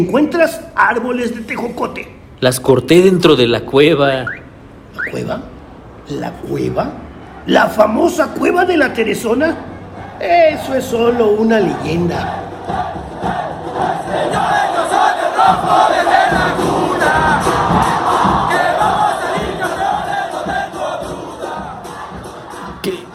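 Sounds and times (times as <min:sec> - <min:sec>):
speech: 0:00.0 - 0:04.4, 0:05.0 - 0:05.5, 0:06.1 - 0:14.6, 0:15.4 - 0:18.0
football supporters' club crowd chanting: 0:09.6 - 0:23.1.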